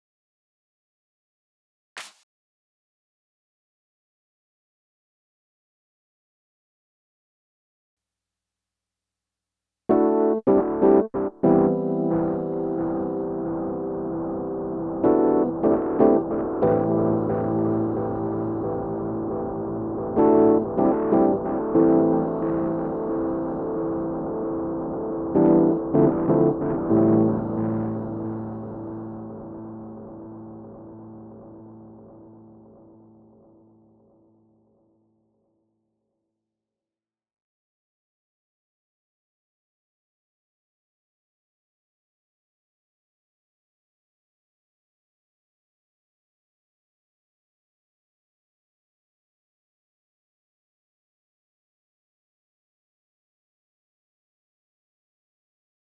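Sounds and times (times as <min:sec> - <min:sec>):
keyboard playing: 0:09.9 - 0:32.0.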